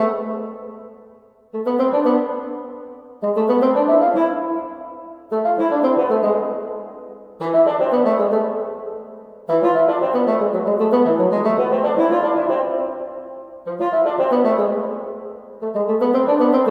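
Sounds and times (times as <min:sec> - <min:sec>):
bassoon: 0:00.0 - 0:16.6.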